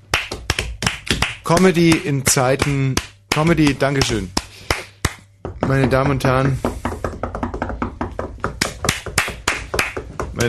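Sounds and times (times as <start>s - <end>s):
scattered audience clapping at a comedy show: 0.1s - 5.2s, 8.4s - 10.4s
speech: 1.5s - 4.4s, 5.7s - 6.7s.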